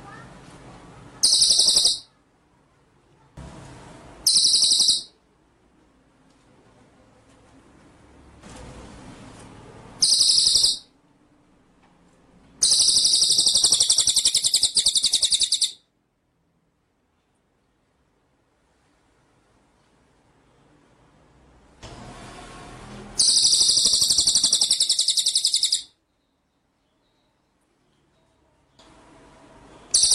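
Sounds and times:
white-rumped shama rattling trill: 1.2s - 2.1s, 4.2s - 5.2s, 10.0s - 10.9s, 12.6s - 15.8s, 23.2s - 25.9s, 29.9s - 30.1s.

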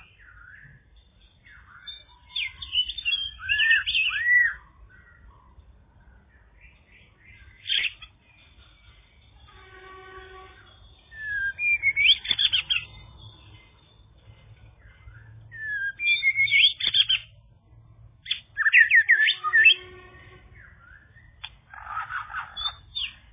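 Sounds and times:
bird chirping and whistling: 1.4s - 4.6s, 7.3s - 8.1s, 10.8s - 13.0s, 14.9s - 17.4s, 18.2s - 20.0s, 20.6s - 23.3s.

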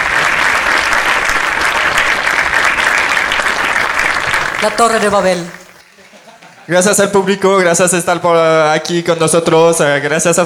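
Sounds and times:
audience applause at a live stage performance: 0.0s - 5.8s
laughter: 3.9s - 6.9s
speech: 4.6s - 5.6s, 6.7s - 10.4s.

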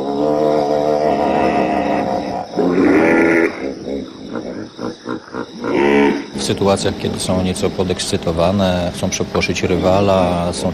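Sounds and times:
hippopotamus croaking grunts and chuckles: 0.0s - 6.6s
speech: 6.4s - 10.7s.

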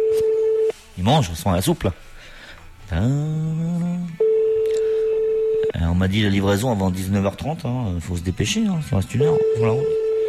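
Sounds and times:
speech: 1.0s - 2.1s, 2.9s - 3.8s, 5.7s - 10.0s
telephone ringback tone on a call to a retirement home: 4.2s - 5.7s, 9.2s - 10.2s.

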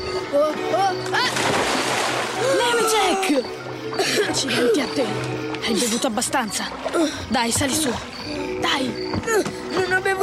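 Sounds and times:
water sloshing and spraying: 0.1s - 10.2s
splash of a person falling into a lake from a boat: 1.1s - 2.8s
speech: 3.2s - 10.2s.

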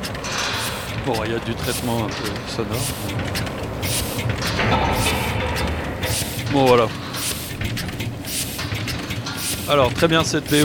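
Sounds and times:
large pneumatic Heidelberg printing press running: 0.0s - 10.6s
speech: 1.0s - 5.2s, 6.5s - 7.0s, 9.7s - 10.6s
bursts of hissing air from the printing press: 2.8s - 3.2s, 3.8s - 5.4s, 6.0s - 7.6s, 8.2s - 8.8s, 9.4s - 9.8s.

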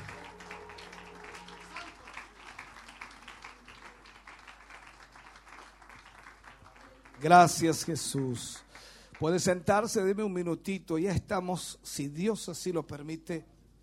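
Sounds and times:
faint applause from a church congregation at a worship service: 0.0s - 9.6s
speech: 7.2s - 8.6s, 9.2s - 13.5s.

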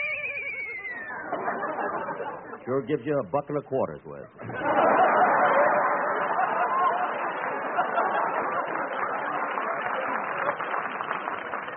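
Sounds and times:
horse whinny radio sound effect: 0.0s - 1.3s
laughter: 0.9s - 2.8s, 4.2s - 10.6s
speech: 2.6s - 4.7s.

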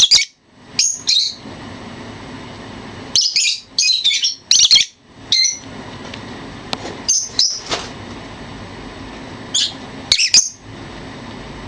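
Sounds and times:
bird twittering training song: 0.0s - 1.4s, 3.2s - 5.6s, 9.5s - 10.6s.

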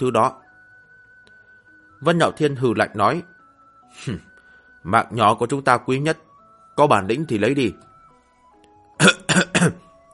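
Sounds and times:
speech: 0.0s - 0.4s, 2.0s - 3.3s, 3.9s - 7.9s, 9.0s - 9.8s
person coughing: 9.0s - 9.9s.

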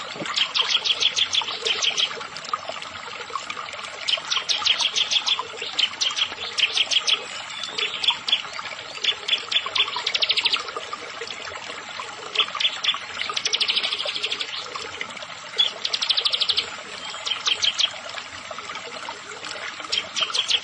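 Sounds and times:
Bar-winged prinia buzzy singing: 0.0s - 2.2s, 4.0s - 10.8s, 12.3s - 14.8s, 15.6s - 18.0s, 19.7s - 20.6s.

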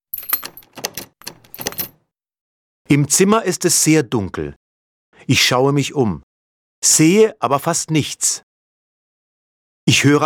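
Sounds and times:
door being locked with keys: 0.1s - 2.0s
speech: 2.9s - 4.6s, 5.3s - 8.5s, 9.9s - 10.2s.

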